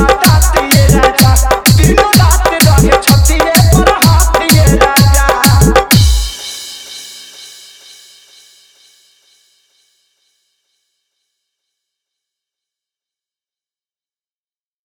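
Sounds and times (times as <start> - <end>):
Bhojpuri hard bass dance mix: 0.0 - 6.6.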